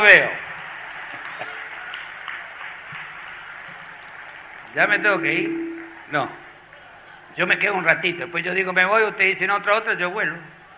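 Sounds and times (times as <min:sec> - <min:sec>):
speech: 0:00.0 - 0:00.4, 0:04.7 - 0:06.4, 0:07.3 - 0:10.5
audience applause: 0:00.0 - 0:05.2.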